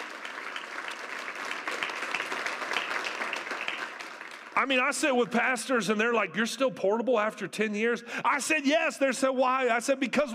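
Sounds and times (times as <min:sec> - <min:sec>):
audience hand clapping: 0:00.0 - 0:05.3
speech: 0:04.6 - 0:10.3.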